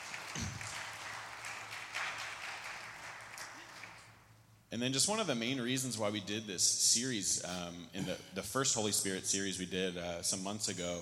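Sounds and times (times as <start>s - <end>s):
audience applause: 0.0s - 4.1s
speech: 0.4s - 0.6s, 4.7s - 10.9s.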